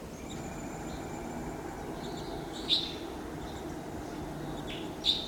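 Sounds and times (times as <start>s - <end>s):
wild birds calling at the top of a lodgepole pine: 0.1s - 5.2s.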